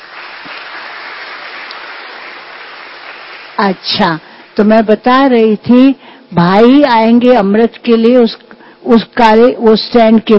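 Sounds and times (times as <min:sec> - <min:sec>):
audience clapping: 0:00.0 - 0:03.6
speech: 0:03.6 - 0:10.3.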